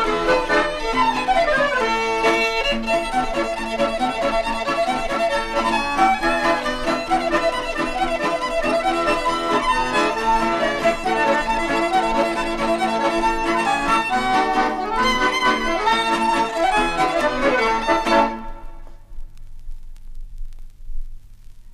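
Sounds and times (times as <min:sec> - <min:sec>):
French-style paso doble music: 0:00.0 - 0:19.0.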